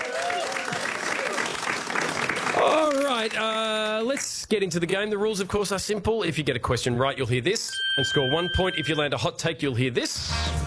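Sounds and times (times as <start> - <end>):
faint voices and cheers: 0.0 - 1.4
audience applause: 0.0 - 4.0
speech: 2.6 - 10.6.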